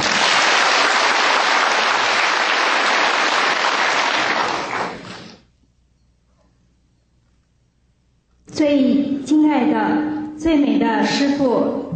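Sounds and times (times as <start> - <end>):
audience applause: 0.0 - 5.4
speech: 8.6 - 11.9.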